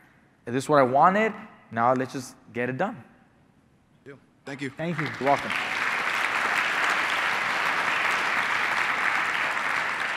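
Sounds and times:
speech: 0.5 - 3.1, 4.0 - 5.7
crowd applause: 4.8 - 10.1.

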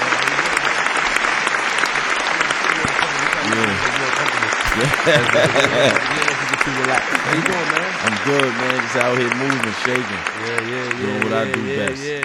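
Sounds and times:
crowd round of applause: 0.0 - 12.2
voices cheering: 0.0 - 12.2
laughter: 3.2 - 12.2
speech: 4.8 - 12.2.

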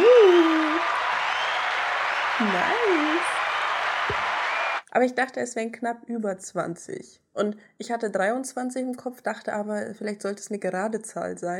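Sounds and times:
low sustained voice-like gliding tone: 0.0 - 0.8
applause: 0.0 - 4.8
speech: 2.4 - 3.4, 5.0 - 11.5.

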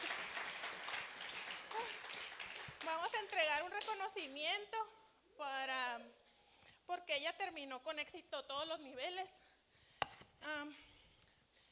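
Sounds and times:
applause: 0.0 - 4.3
speech: 2.9 - 6.2, 6.9 - 9.4, 10.4 - 10.9.

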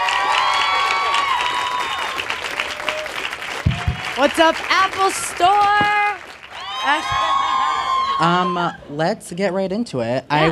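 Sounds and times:
crowd clapping: 0.0 - 8.4
crowd cheering: 0.0 - 9.4
speech: 4.2 - 6.1, 6.8 - 7.6, 8.2 - 10.5.

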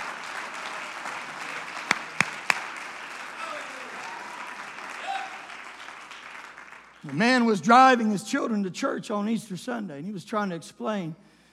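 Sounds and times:
audience clapping hands: 0.0 - 8.2
speech: 7.0 - 11.3.

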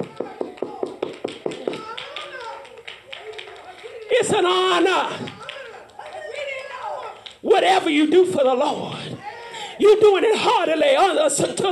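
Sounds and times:
audience clapping hands: 0.0 - 7.4
speech: 4.2 - 5.3, 7.6 - 9.2, 9.8 - 11.6.

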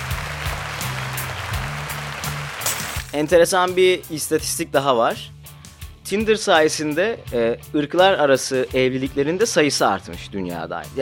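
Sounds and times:
audience applause: 0.0 - 3.1
speech: 3.1 - 5.4, 6.1 - 11.0.

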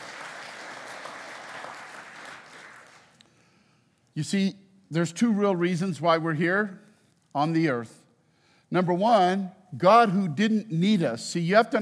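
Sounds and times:
crowd applauding: 0.0 - 3.2
speech: 4.2 - 6.8, 7.4 - 8.0, 8.7 - 11.8.

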